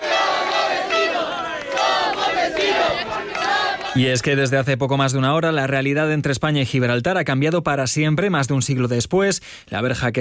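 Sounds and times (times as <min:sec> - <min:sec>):
crowd cheering and shouting at the Spain-Gibraltar border fence: 0:00.0 - 0:04.2
speech: 0:03.9 - 0:10.2.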